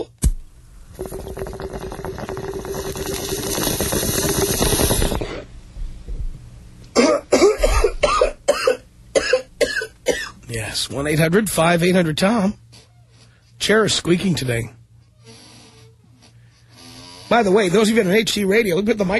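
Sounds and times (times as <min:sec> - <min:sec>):
water bubbling through a bong: 0:00.8 - 0:05.5
harsh coughing: 0:06.9 - 0:10.4
speech: 0:10.8 - 0:12.6, 0:13.6 - 0:14.8, 0:17.3 - 0:19.1.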